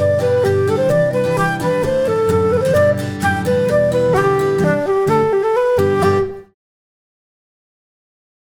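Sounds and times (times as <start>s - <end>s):
polka music: 0.0s - 6.4s.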